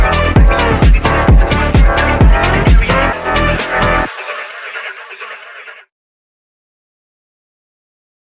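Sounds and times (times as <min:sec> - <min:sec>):
lofi music: 0:00.0 - 0:05.9.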